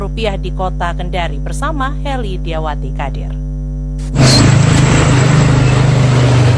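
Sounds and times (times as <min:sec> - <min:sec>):
speech: 0:00.1 - 0:04.3
rolling wheels of street traffic: 0:04.2 - 0:06.5
street traffic engines roaring: 0:04.2 - 0:06.5.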